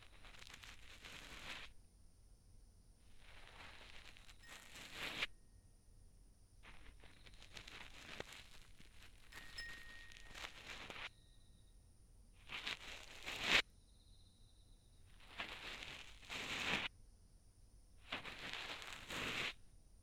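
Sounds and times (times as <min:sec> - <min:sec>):
cotton swab rubbing in left ear for ASMR: 0:00.0 - 0:01.7, 0:03.1 - 0:05.3, 0:06.6 - 0:11.1, 0:12.4 - 0:13.6, 0:15.2 - 0:16.9, 0:18.1 - 0:19.6.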